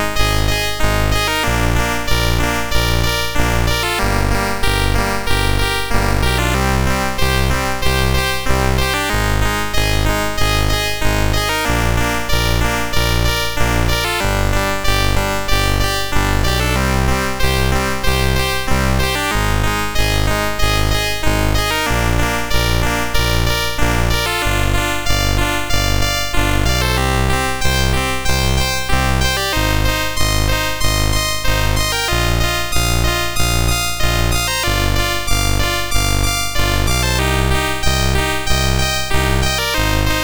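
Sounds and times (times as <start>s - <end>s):
simple chiptune melody on a MOS6581R3 SID chip: 0.0s - 40.2s.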